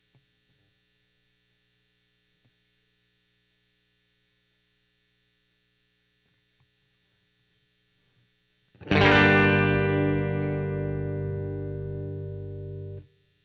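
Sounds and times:
overdriven electric guitar: 0:08.8 - 0:13.1.

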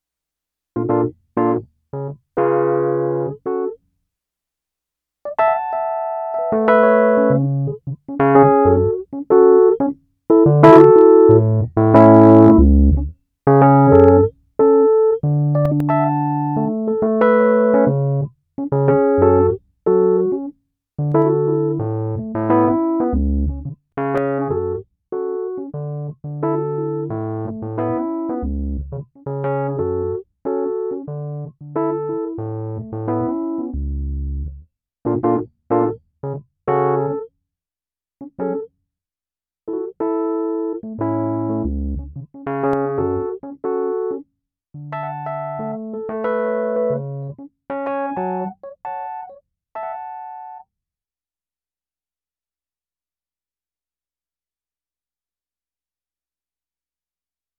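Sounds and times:
keyboard music: 0:00.8 - 0:03.8, 0:05.3 - 0:33.8, 0:35.1 - 0:36.0, 0:36.7 - 0:37.3, 0:38.3 - 0:38.7, 0:39.7 - 0:44.2, 0:44.8 - 0:50.6.

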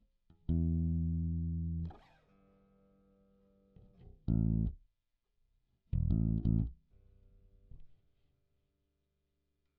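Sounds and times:
bass guitar recorded by direct input: 0:00.3 - 0:02.0, 0:04.0 - 0:04.8, 0:06.0 - 0:06.8.

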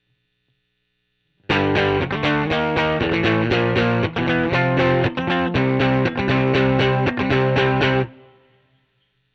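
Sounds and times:
overdriven electric guitar: 0:01.4 - 0:08.7.

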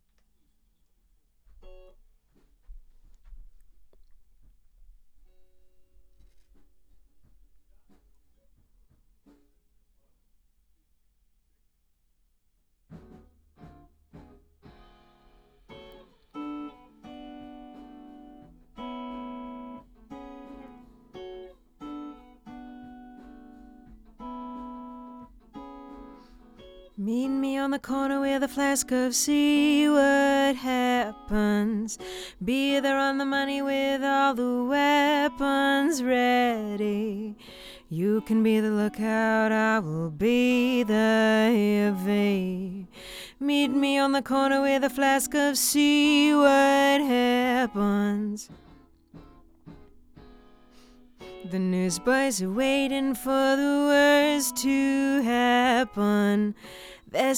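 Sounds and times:
lead vocal on an SM7 microphone: 0:27.0 - 0:48.5, 0:51.5 - 0:57.3.

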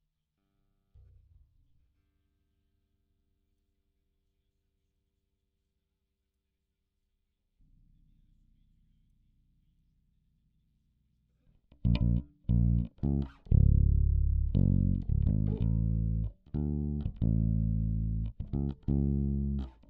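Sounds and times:
bass guitar recorded by direct input: 0:11.7 - 0:19.8.

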